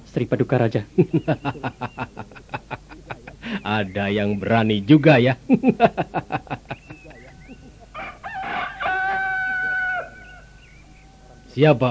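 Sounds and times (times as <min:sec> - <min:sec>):
speech: 0:00.1 - 0:02.4, 0:03.5 - 0:06.6, 0:11.6 - 0:11.8
laughter: 0:01.0 - 0:03.9, 0:05.4 - 0:08.2
rooster crowing: 0:07.9 - 0:11.6.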